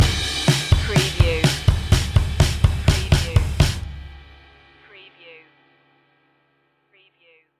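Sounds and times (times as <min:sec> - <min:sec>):
rock music stinger: 0:00.0 - 0:04.5.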